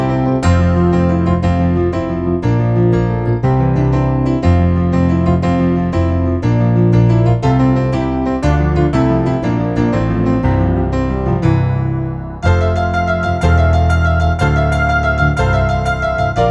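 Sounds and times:
piano solo: 0.0s - 16.4s.

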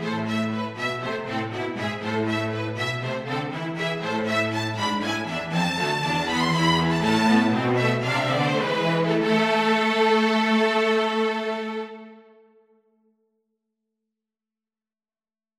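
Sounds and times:
string trio playing: 0.0s - 12.3s.

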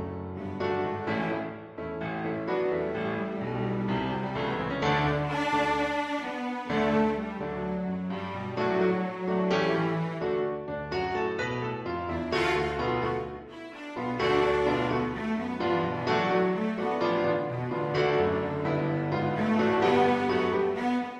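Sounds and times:
piano: 0.0s - 21.1s
rock cello: 3.2s - 10.3s, 12.2s - 21.1s.

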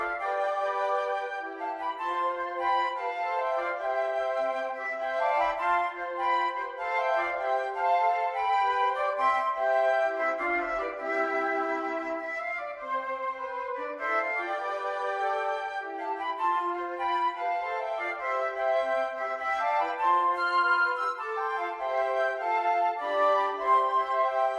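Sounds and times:
jazz flute: 0.0s - 24.5s.

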